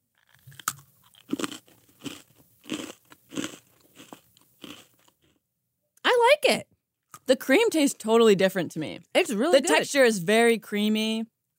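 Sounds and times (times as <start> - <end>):
eating a cream-filled cracker cookie with a slightly stale cracker: 0.1 - 5.4
speech: 6.4 - 6.7, 7.3 - 11.3.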